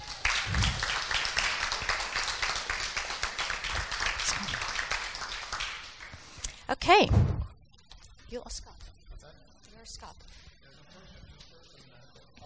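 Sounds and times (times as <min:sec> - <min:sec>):
audience applause: 0:00.0 - 0:06.2
speech: 0:06.7 - 0:07.2, 0:08.3 - 0:08.8.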